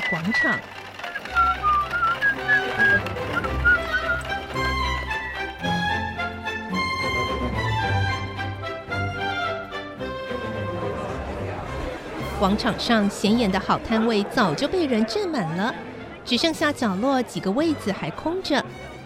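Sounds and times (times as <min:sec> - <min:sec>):
cheerful whistled tune: 0:00.0 - 0:05.5
speech: 0:00.1 - 0:01.8, 0:12.4 - 0:18.9
lively backing music: 0:00.6 - 0:12.6.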